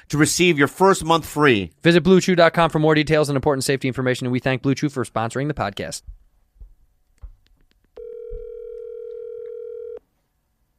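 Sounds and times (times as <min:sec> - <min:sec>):
speech: 0:00.0 - 0:06.2
soft clicks and thumps: 0:06.0 - 0:09.6
outgoing phone call ringtone: 0:08.0 - 0:10.0.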